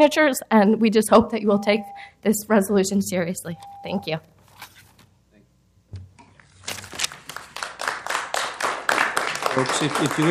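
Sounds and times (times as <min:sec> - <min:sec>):
speech: 0:00.0 - 0:04.3, 0:09.6 - 0:10.2
audience clapping: 0:07.1 - 0:10.2.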